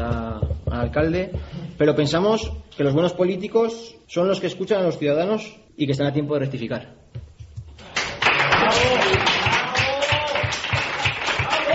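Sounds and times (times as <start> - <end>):
speech: 0.8 - 7.0
applause after a speech: 7.9 - 11.7.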